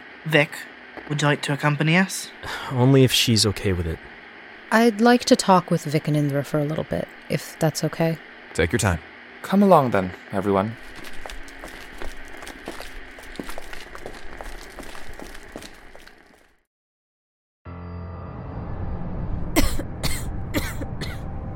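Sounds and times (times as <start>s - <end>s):
speech: 0.2s - 4.1s, 4.7s - 11.1s
crackling clattering noise: 10.8s - 16.6s
person coughing from dust and smoke: 19.6s - 21.2s.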